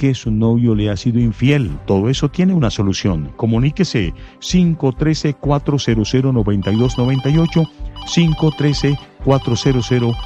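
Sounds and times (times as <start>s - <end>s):
speech: 0.0s - 10.2s
telephone ringing with an incoming call: 6.6s - 10.2s.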